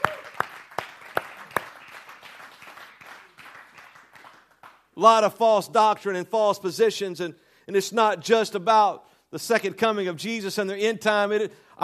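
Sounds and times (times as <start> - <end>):
sharp hand claps: 0.0 - 4.9
speech: 5.0 - 11.8.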